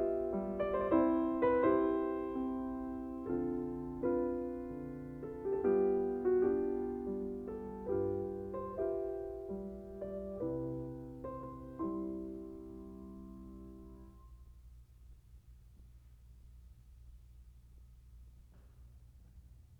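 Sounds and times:
piano mazurka in C: 0.0 - 14.4.

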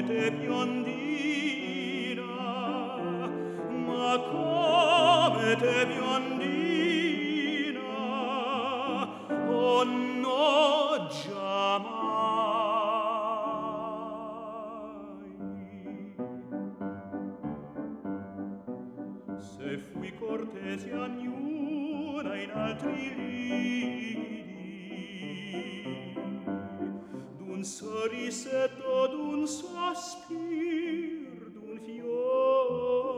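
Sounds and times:
song cycle for voice and piano: 0.0 - 18.5, 19.3 - 33.1.

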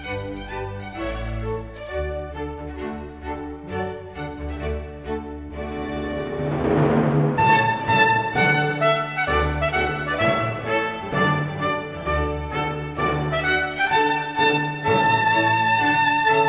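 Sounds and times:
strings: 0.0 - 16.4
trumpet: 6.4 - 16.4.

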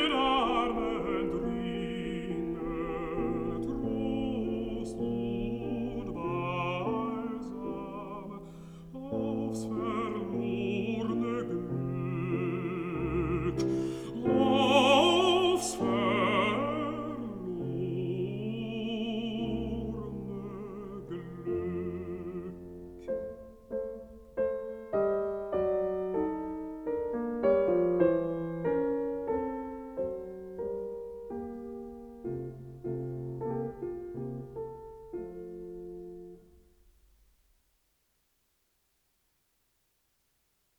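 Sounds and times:
person singing: 0.0 - 23.9
piano: 0.0 - 38.0.

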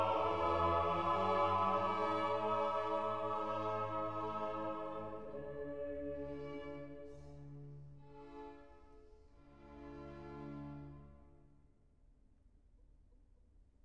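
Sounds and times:
soloists singing a requiem: 0.0 - 7.2
orchestra playing a requiem: 0.0 - 8.5.

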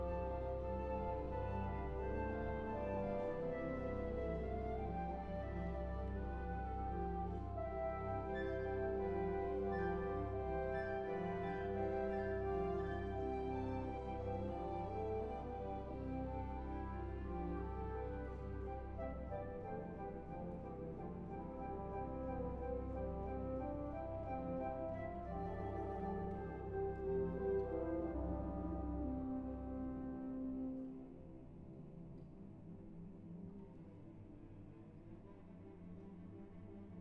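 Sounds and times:
suite for orchestra: 0.0 - 36.9.

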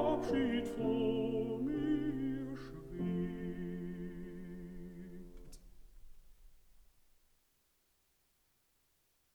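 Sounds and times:
person singing: 0.0 - 5.4
piano: 0.0 - 6.6.

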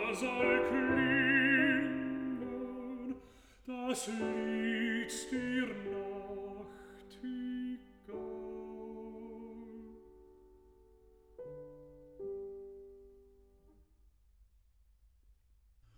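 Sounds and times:
person singing a song cycle: 0.0 - 10.2
piano: 0.0 - 14.0.

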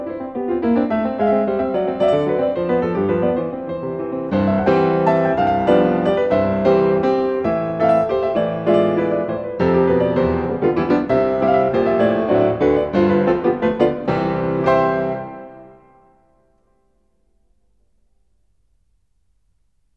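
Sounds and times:
Norwegian folk dance music: 0.2 - 15.9.

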